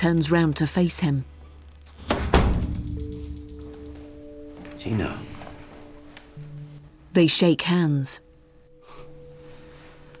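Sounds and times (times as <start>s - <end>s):
speech: 0.0s - 1.3s, 4.8s - 5.3s, 7.2s - 8.2s
door opening with heavy thunks in a police station: 1.9s - 3.0s.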